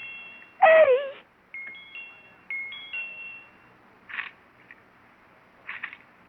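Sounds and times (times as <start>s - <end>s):
electronic doorbell chiming: 0.0s - 3.8s
faint hiss: 0.0s - 6.2s.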